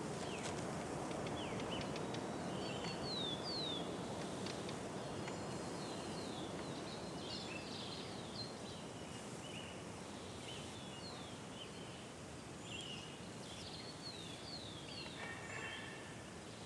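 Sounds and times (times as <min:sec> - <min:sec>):
forest birds: 0:00.0 - 0:16.6.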